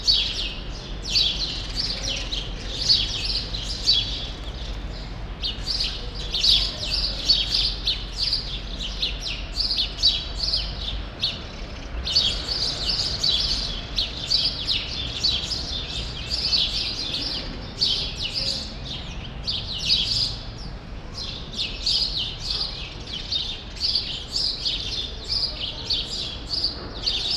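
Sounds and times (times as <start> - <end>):
flock of sparrows chattering in a grove in Brussels Belgium: 0.0 - 27.3.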